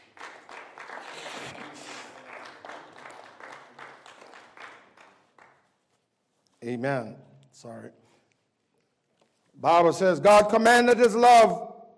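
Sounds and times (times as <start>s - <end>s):
audience hand clapping: 0.0s - 5.9s
speech: 6.6s - 8.0s, 9.6s - 11.7s.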